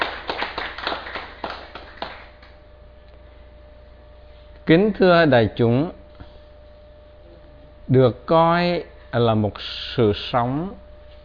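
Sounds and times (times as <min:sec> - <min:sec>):
small audience clapping: 0:00.0 - 0:02.6
speech: 0:04.7 - 0:06.0, 0:07.9 - 0:10.8.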